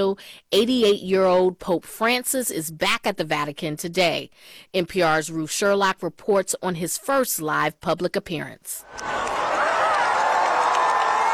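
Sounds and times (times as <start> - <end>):
speech: 0.0 - 9.3
crowd outside Gemelli Hospital cheering for Pope Francis: 8.9 - 11.3.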